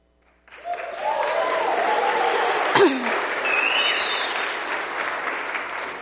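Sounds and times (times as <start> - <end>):
United Methodist church congregation clapping: 0.2 - 6.0
high whoop: 0.6 - 2.7.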